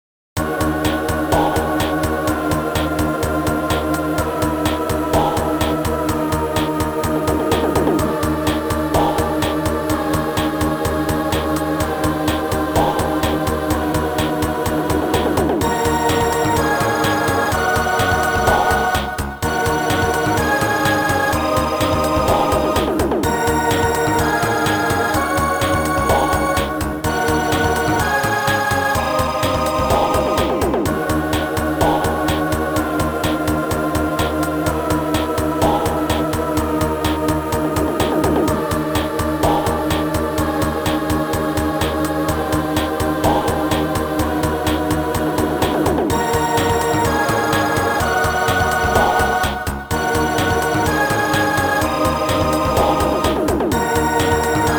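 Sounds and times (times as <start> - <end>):
battle music: 0.4 - 54.7.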